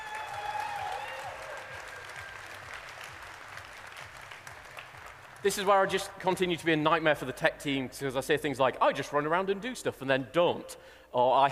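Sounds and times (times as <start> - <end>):
audience applause: 0.0 - 6.0
speech: 5.4 - 11.4.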